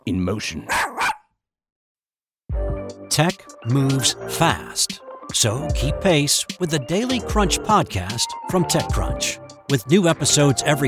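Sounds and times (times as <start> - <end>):
speech: 0.1 - 1.0, 3.2 - 10.8
small dog barking: 0.7 - 1.2.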